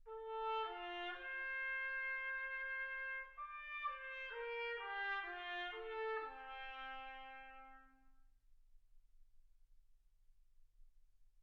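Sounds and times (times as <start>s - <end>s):
trumpet: 0.0s - 8.3s.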